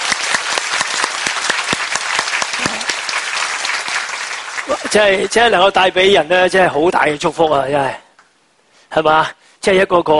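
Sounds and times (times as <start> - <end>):
audience applause: 0.0 - 5.8
speech: 4.7 - 8.0, 8.9 - 10.1.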